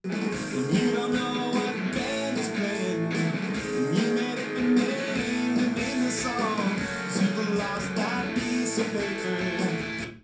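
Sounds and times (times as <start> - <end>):
music with drums: 0.0 - 10.2.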